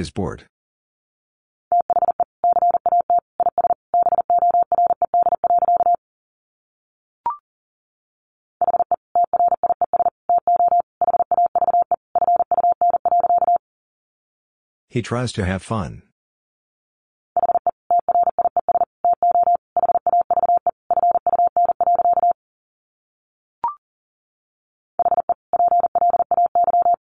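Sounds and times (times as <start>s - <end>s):
speech: 0.0s - 0.5s, 14.9s - 16.1s
fast Morse code beeps at 40 words per minute: 1.7s - 6.0s, 8.6s - 13.6s, 17.4s - 22.4s, 25.0s - 27.0s.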